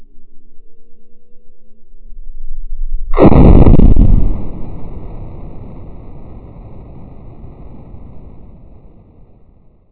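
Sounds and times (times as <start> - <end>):
explosion: 3.1 - 9.7.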